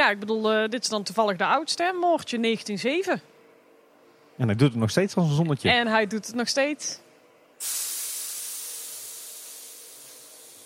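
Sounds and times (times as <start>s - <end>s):
speech: 0.1s - 3.3s, 4.4s - 7.0s, 7.6s - 7.9s
compressed air hissing in train brakes: 7.6s - 10.6s.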